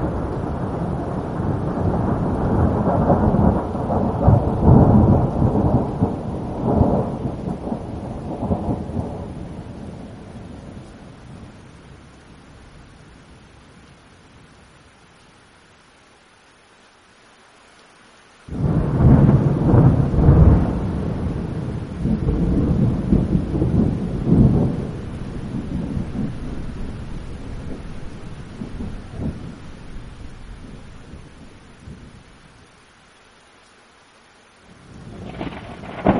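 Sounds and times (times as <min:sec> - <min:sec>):
deep heavy thunder rumbling: 0:00.0 - 0:11.6, 0:18.5 - 0:32.3, 0:34.7 - 0:36.1.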